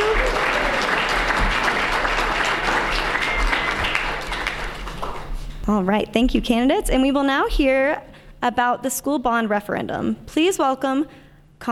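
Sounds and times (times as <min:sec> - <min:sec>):
audience applause: 0:00.0 - 0:05.3
speech: 0:05.7 - 0:11.7.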